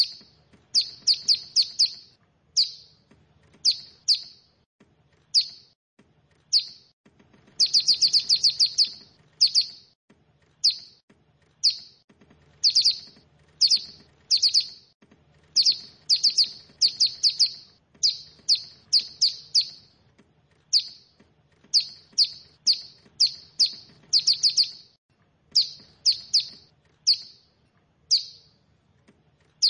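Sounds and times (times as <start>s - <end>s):
bar-winged prinia giving high sharp down-slurred chirps: 0.0s - 3.0s, 3.6s - 4.5s, 5.3s - 5.8s, 6.4s - 6.9s, 7.6s - 10.0s, 10.6s - 11.0s, 11.6s - 12.0s, 12.6s - 14.9s, 15.5s - 20.0s, 20.6s - 27.5s, 28.1s - 28.6s.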